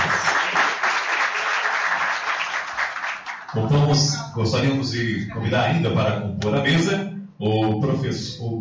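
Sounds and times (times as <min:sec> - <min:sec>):
audience applause: 0:00.0 - 0:03.6
speech: 0:03.6 - 0:08.6.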